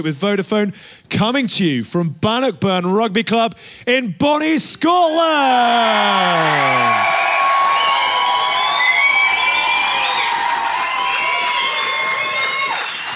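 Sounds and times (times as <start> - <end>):
speech: 0.0 - 7.4
whoops and shouts: 5.5 - 13.1
large crowd cheering: 5.6 - 13.1.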